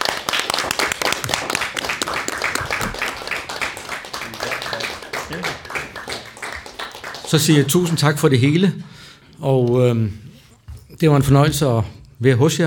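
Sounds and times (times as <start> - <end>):
audience applause after a talk: 0.0 - 8.2
speech: 7.3 - 10.3, 11.0 - 12.6.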